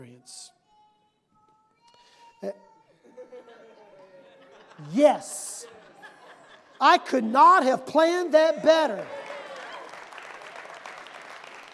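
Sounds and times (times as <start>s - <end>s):
speech: 0.0s - 0.5s, 2.4s - 2.7s, 4.8s - 5.5s, 6.8s - 9.2s
laughter: 2.9s - 10.1s
audience applause: 8.8s - 11.7s.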